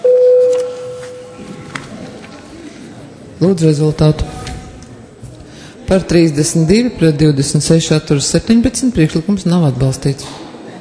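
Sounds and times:
parliament voting bell electronic tone: 0:00.0 - 0:01.4
faint rustling and murmur: 0:00.7 - 0:03.4, 0:04.0 - 0:05.9
speech: 0:03.4 - 0:04.4, 0:05.9 - 0:10.5.

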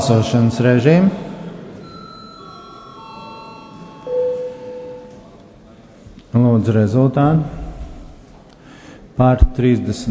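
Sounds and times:
speech: 0:00.0 - 0:01.3, 0:06.6 - 0:07.6, 0:09.2 - 0:10.1
parliament voting bell: 0:01.8 - 0:05.4.

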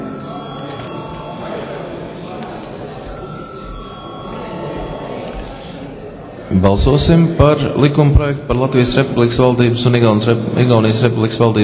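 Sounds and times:
parliament chamber bell ringing: 0:00.0 - 0:02.0, 0:03.1 - 0:05.7
low murmur of people talking: 0:00.0 - 0:11.6
speech: 0:06.6 - 0:11.6.

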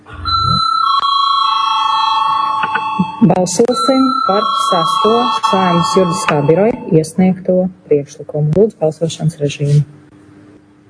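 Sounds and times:
parliament voting bell ringing: 0:00.2 - 0:07.0
speech: 0:03.2 - 0:10.0.

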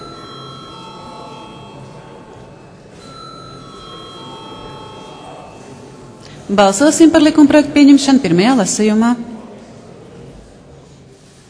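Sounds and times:
parliamentary voting electric bell ringing: 0:00.0 - 0:06.1
murmur of people talking: 0:00.0 - 0:11.4
speech: 0:06.5 - 0:09.4.

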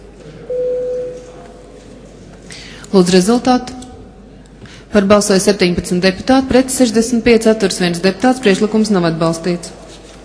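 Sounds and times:
parliamentary voting bell: 0:00.5 - 0:01.3
speech: 0:02.9 - 0:03.8, 0:04.9 - 0:09.8.

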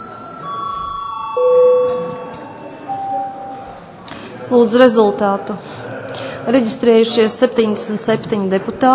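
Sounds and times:
parliament chamber bell ringing electronic chimes: 0:00.0 - 0:04.0
murmur of voices: 0:00.0 - 0:08.9
speech: 0:04.5 - 0:05.7, 0:06.4 - 0:08.9.

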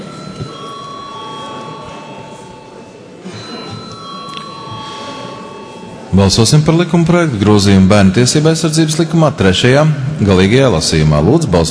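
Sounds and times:
parliament voting bell ringing: 0:00.0 - 0:07.1
murmur of people talking: 0:00.0 - 0:11.7
speech: 0:06.2 - 0:11.7.

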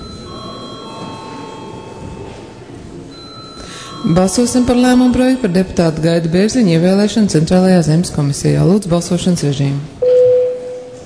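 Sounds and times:
parliament session electric bell ringing: 0:00.0 - 0:06.7, 0:10.0 - 0:11.0
murmur of noise: 0:00.0 - 0:11.0
speech: 0:04.0 - 0:10.0.

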